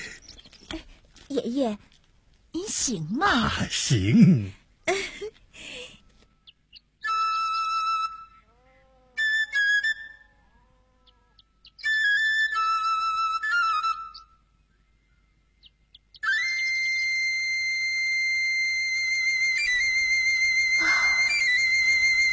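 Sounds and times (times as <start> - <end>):
speech: 1.3 - 1.9, 2.6 - 5.1
eagle-bone flute playing: 7.0 - 8.4, 11.9 - 14.3, 16.2 - 22.3.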